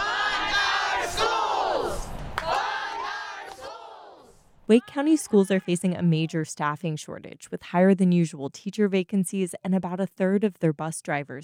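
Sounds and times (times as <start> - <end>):
crowd of educators rallying outdoors chanting and cheering: 0.0 - 5.4
speech: 4.7 - 11.4.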